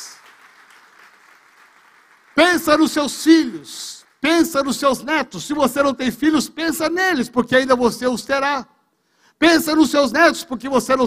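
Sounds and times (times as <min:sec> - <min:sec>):
audience applause: 0:00.0 - 0:04.2
speech: 0:02.4 - 0:08.8, 0:09.4 - 0:11.0.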